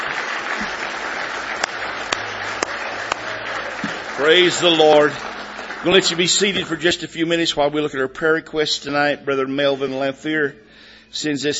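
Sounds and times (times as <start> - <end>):
sharp loud claps: 0.0 - 7.2
audience applause: 0.0 - 7.5
speech: 4.2 - 11.5.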